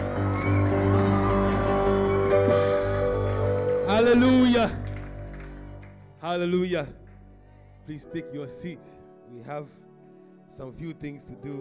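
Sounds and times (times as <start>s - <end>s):
audience clapping and shouting: 0.0s - 7.4s
speech: 4.1s - 4.8s, 6.2s - 7.0s, 7.9s - 9.8s, 10.6s - 11.6s.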